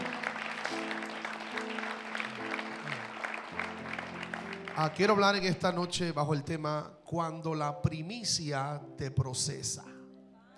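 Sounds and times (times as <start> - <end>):
audience applauding loudly: 0.0 - 5.9
keyboard chords: 0.0 - 10.5
speech: 4.8 - 9.9.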